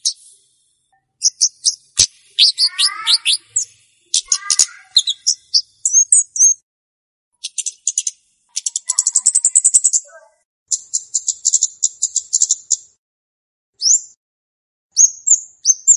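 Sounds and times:
flowerpecker giving rattling lure calls: 1.0 - 6.6, 7.4 - 12.9.

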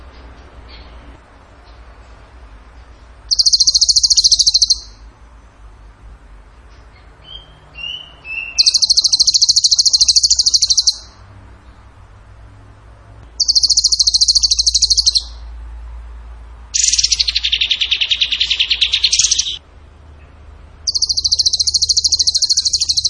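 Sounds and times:
bird singing buzzy trill: 3.3 - 5.1, 6.7 - 12.0, 13.4 - 15.6, 16.7 - 19.6, 20.2 - 23.0.

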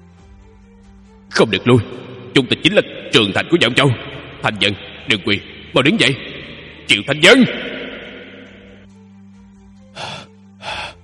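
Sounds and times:
low droning sound: 0.0 - 11.0
speech: 1.3 - 6.3, 6.9 - 7.7
man gasping heavily on waking in cold sweat: 9.9 - 11.0.

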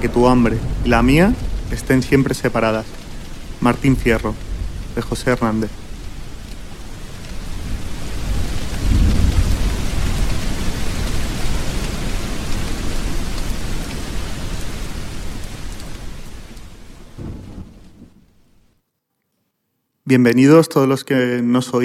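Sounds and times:
speech: 0.0 - 3.0, 3.6 - 5.8, 20.1 - 21.8
deep rumble of thunder: 0.0 - 13.7, 17.1 - 18.4
steady heavy rain from a summer thunderstorm over Quatre Camins: 0.0 - 18.7.

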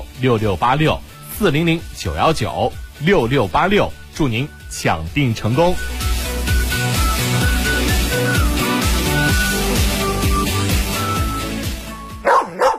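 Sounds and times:
upbeat music with a steady beat: 0.0 - 12.7
speech: 0.2 - 6.0
dog barking sharply: 12.2 - 12.7.

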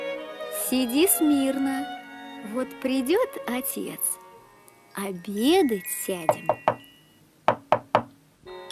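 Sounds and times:
speech: 0.7 - 4.2, 5.0 - 6.6
knocking on a door: 6.3 - 6.8, 7.5 - 8.1.

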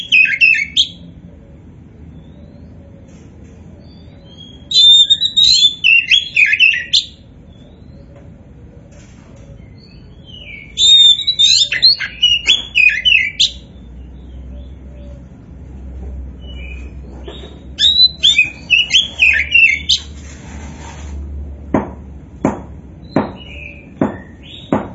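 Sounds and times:
Oriental magpie-robin song: 0.0 - 1.0, 3.9 - 8.0, 9.7 - 15.2, 16.4 - 20.1.

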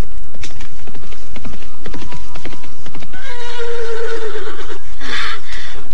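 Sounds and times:
horse hooves clopping: 0.0 - 5.9
horse whinnying: 3.0 - 5.6.

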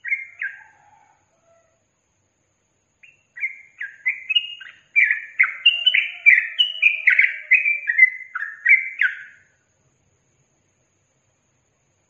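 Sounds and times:
yellow-vented bulbul singing: 0.0 - 0.9, 2.9 - 9.8.

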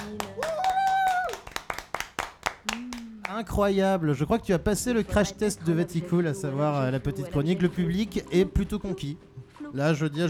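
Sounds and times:
audience applause: 0.0 - 3.5
speech: 3.4 - 10.2.

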